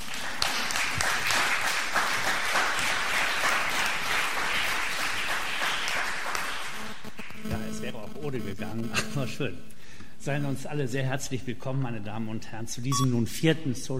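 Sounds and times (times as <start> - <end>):
audience applause: 0.0 - 7.5
speech: 8.3 - 13.9.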